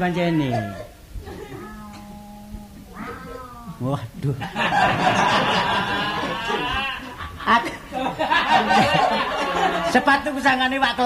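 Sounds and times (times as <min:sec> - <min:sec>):
speech: 0:00.0 - 0:00.9, 0:03.8 - 0:05.7, 0:07.5 - 0:11.0
fierce cat meowing: 0:00.5 - 0:03.8
laughter: 0:04.4 - 0:10.0.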